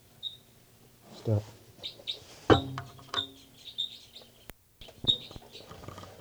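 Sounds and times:
recorded bird calls: 0.0s - 6.1s
speech: 1.2s - 2.6s.

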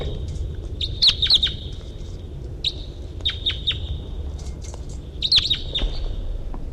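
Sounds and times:
wild bird chirping: 0.0s - 2.0s, 2.6s - 4.2s, 5.1s - 6.3s
steady low rumble: 0.0s - 6.7s.

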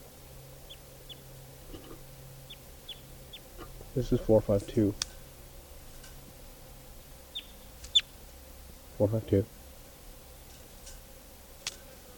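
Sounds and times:
wild birds calling: 0.6s - 5.7s, 7.1s - 8.2s
speech: 4.0s - 5.1s, 9.0s - 9.6s.

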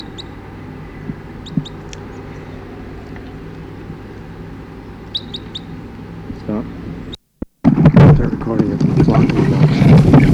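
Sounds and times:
crossbills calling in trees: 0.0s - 10.3s.

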